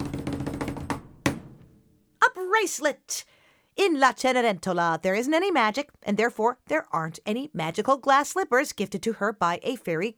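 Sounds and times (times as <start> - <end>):
drumroll tapped on a desk: 0.0 - 1.8
speech: 2.6 - 10.1.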